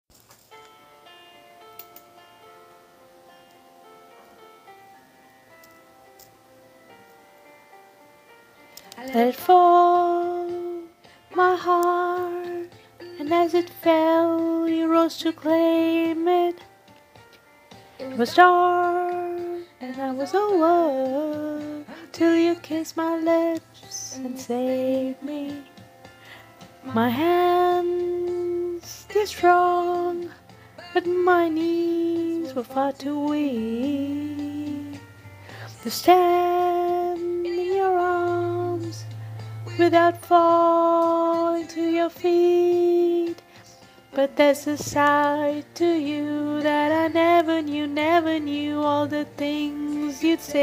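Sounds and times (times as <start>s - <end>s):
person singing: 8.8s - 16.7s, 18.0s - 25.7s, 26.4s - 50.6s.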